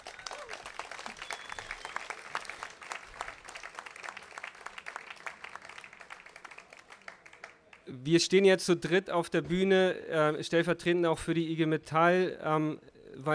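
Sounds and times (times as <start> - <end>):
audience applause: 0.0 - 7.8
speech: 7.9 - 13.3.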